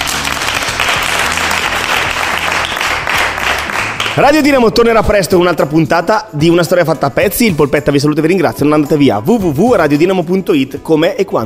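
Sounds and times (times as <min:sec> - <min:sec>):
audience applause: 0:00.0 - 0:04.4
speech: 0:04.2 - 0:11.4.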